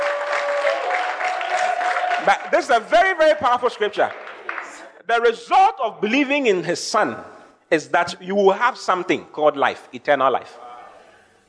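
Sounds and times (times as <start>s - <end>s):
audience clapping: 0.0s - 5.0s
speech: 2.3s - 4.2s, 5.1s - 10.6s.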